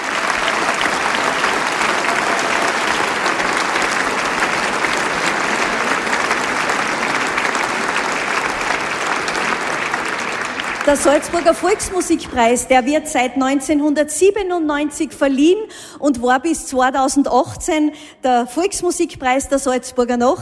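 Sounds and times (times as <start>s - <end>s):
audience applause: 0.0s - 12.7s
speech: 10.9s - 20.3s.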